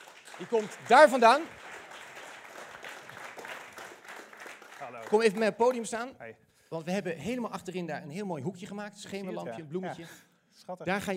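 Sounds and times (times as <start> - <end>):
audience applause: 0.0 - 5.9
speech: 0.4 - 1.6, 4.9 - 11.1.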